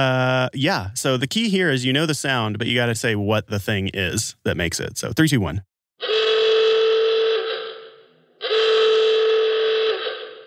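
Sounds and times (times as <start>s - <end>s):
speech: 0.0s - 6.1s
klaxon horn: 6.0s - 10.4s.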